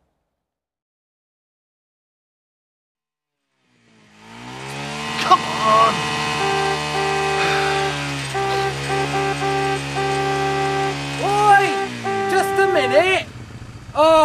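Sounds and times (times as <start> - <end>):
motorbike engine revving: 3.6 - 14.2.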